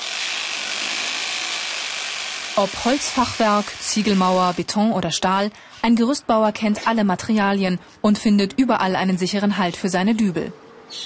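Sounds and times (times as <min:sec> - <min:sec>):
hammer drill drilling for anchors: 0:00.0 - 0:04.7
speech: 0:02.6 - 0:11.0.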